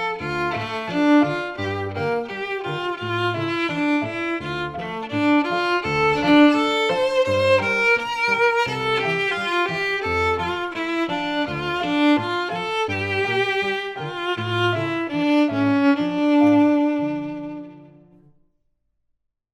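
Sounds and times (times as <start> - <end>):
violin: 0.0 - 18.3
piano: 0.0 - 18.4.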